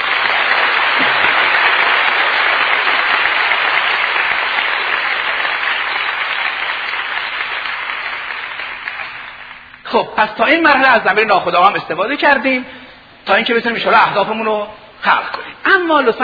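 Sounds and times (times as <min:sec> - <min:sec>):
audience in a class clapping: 0:00.0 - 0:09.9
speech: 0:10.0 - 0:16.2.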